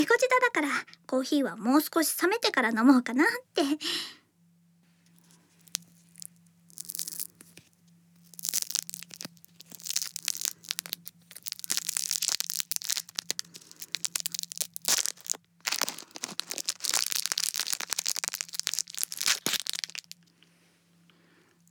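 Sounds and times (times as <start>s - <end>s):
speech: 0.0s - 4.2s
lollipop wrapper being torn and crinkled: 5.1s - 20.3s.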